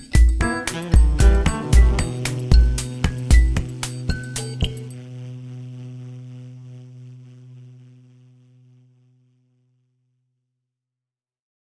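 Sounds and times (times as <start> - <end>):
waltz with wah-wah effect: 0.3 - 4.9.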